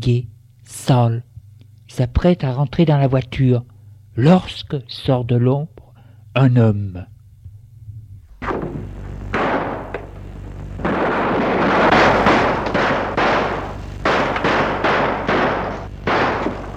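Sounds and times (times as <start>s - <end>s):
speech: 0.0s - 1.3s, 1.9s - 5.8s, 6.4s - 7.1s
gunshot: 8.4s - 10.0s, 10.8s - 16.7s.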